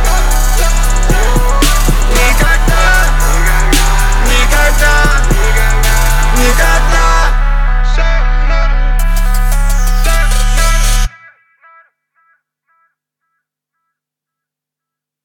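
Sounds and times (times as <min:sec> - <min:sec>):
35Hz sine tone: 0:00.1 - 0:11.1.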